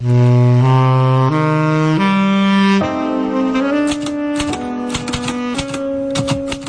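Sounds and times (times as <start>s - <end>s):
sustained saxophone notes: 0.0s - 6.6s
typewriter clacking: 3.8s - 6.6s.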